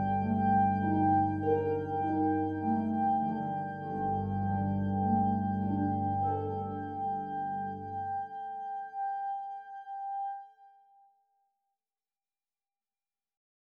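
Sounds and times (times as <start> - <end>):
harp: 0.0 - 10.6
clarinet: 0.0 - 11.0.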